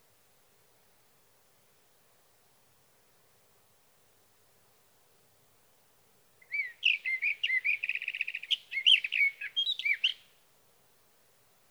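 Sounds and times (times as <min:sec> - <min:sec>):
light background hiss: 0:00.0 - 0:11.6
sage thrasher song: 0:06.4 - 0:10.3.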